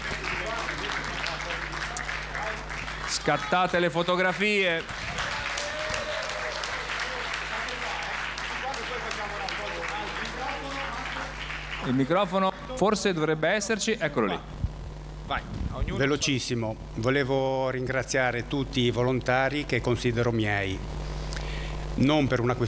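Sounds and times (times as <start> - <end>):
audience applause: 0.0 - 12.7
speech: 3.2 - 5.0, 11.9 - 14.6, 15.3 - 21.0, 22.0 - 22.6.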